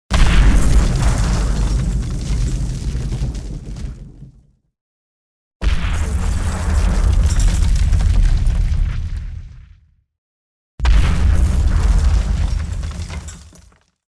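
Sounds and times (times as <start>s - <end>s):
explosions: 0.1s - 4.4s, 5.6s - 9.9s, 10.8s - 13.4s.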